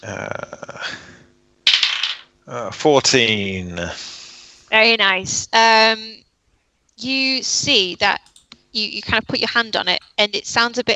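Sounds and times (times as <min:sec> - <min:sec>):
speech: 0:00.0 - 0:00.6, 0:02.5 - 0:04.1, 0:04.7 - 0:06.2, 0:07.0 - 0:10.9
dice clattering across a hard surface: 0:01.7 - 0:02.3.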